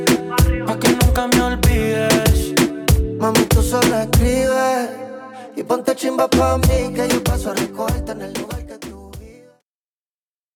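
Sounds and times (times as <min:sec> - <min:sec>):
intro outro music at 96 BPM: 0:00.0 - 0:05.0, 0:06.1 - 0:09.3.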